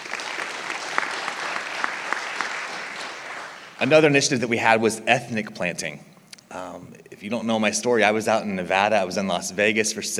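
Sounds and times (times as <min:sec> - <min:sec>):
audience applause: 0:00.0 - 0:04.0
speech: 0:03.8 - 0:10.1.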